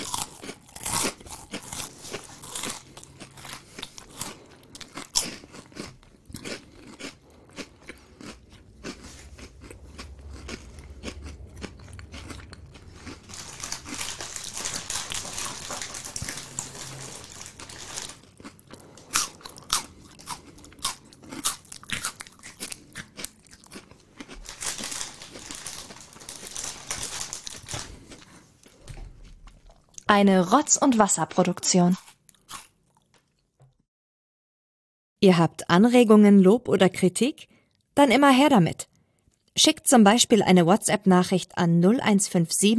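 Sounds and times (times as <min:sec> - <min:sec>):
chewing crunchy food into microphone: 0:00.0 - 0:30.1, 0:31.9 - 0:33.8, 0:38.9 - 0:39.6
speech: 0:30.1 - 0:32.0, 0:35.2 - 0:38.8, 0:39.6 - 0:42.7.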